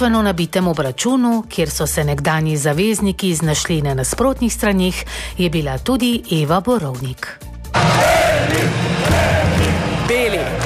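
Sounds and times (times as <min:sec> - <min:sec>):
speech: 0:00.0 - 0:10.6
handball match crowd roaring and chanting: 0:07.7 - 0:10.6.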